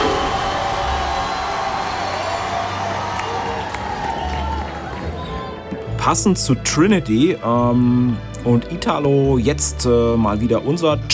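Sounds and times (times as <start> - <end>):
crowd applauding: 0.0 - 6.0
speech: 6.0 - 11.1.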